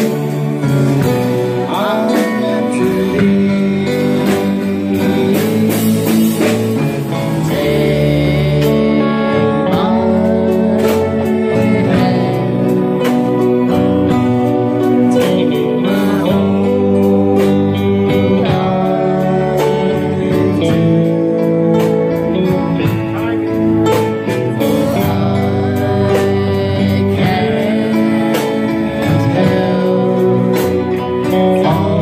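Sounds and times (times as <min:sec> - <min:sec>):
cover band playing: 0:00.0 - 0:32.0.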